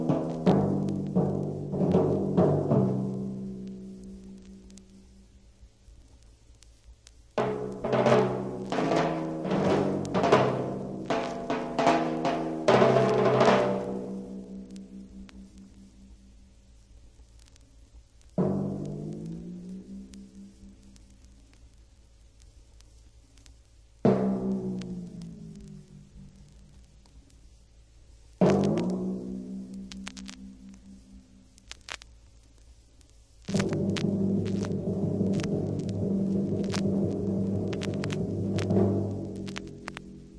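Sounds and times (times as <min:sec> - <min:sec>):
timpani playing various percussion effects: 0:00.0 - 0:04.6, 0:07.4 - 0:15.8, 0:18.4 - 0:21.0, 0:24.1 - 0:26.8, 0:28.4 - 0:31.3, 0:33.5 - 0:40.3.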